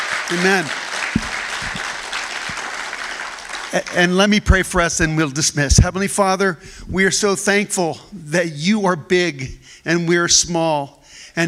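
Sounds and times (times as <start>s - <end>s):
audience applause: 0.0s - 4.3s
speech: 0.3s - 1.3s, 3.7s - 11.4s.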